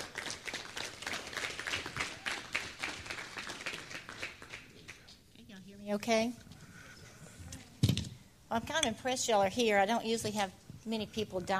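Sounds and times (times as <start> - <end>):
evening audience applause welcoming a nutritionist: 0.0 - 5.0
speech: 5.9 - 6.5, 8.5 - 11.5.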